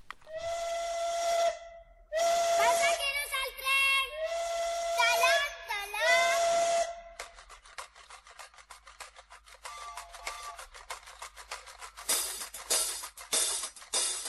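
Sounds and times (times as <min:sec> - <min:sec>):
steam train whistle in a children's song: 0:00.3 - 0:07.3.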